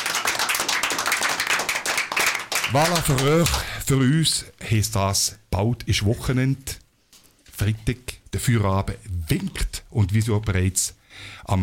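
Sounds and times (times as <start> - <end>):
audience applauding: 0.0 - 3.7
speech: 2.7 - 6.8, 7.6 - 11.6.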